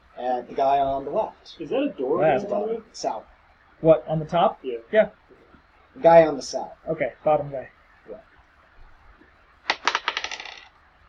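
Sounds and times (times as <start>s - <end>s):
speech: 0.2s - 5.2s, 6.0s - 8.3s
dice rolling on a table: 9.6s - 10.8s.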